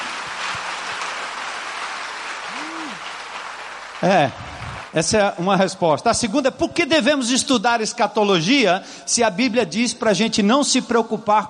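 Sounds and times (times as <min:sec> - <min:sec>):
audience applause: 0:00.0 - 0:05.4
speech: 0:04.0 - 0:11.4.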